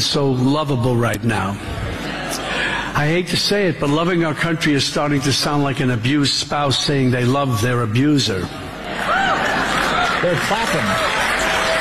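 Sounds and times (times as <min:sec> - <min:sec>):
speech: 0:00.0 - 0:01.8, 0:03.0 - 0:08.6, 0:10.2 - 0:11.3
audience clapping: 0:09.0 - 0:11.7.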